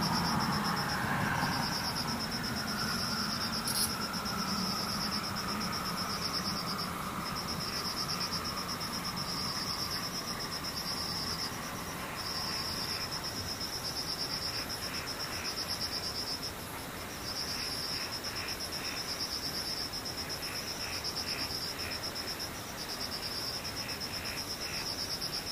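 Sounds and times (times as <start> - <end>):
low engine-like drone: 0.0 - 13.6
insects trilling: 0.0 - 25.5.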